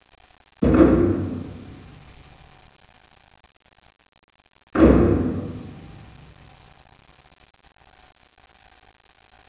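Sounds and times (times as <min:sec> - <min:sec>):
taiko drums: 0:00.6 - 0:02.1, 0:04.8 - 0:06.1.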